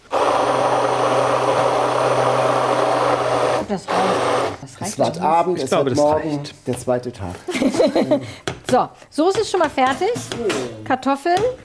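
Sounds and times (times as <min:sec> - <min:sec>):
blender pureeing sauce: 0:00.0 - 0:05.0
speech: 0:05.0 - 0:11.6
laughter: 0:07.5 - 0:08.4.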